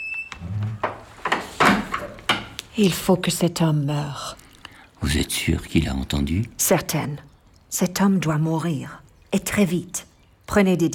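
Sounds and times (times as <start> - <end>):
door being closed: 0.1 - 2.6
speech: 2.8 - 4.4, 5.0 - 10.9.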